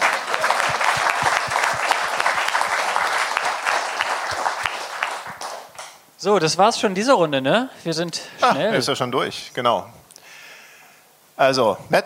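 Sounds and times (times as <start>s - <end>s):
audience applause: 0.0s - 6.0s
speech: 6.2s - 10.0s, 11.4s - 12.0s.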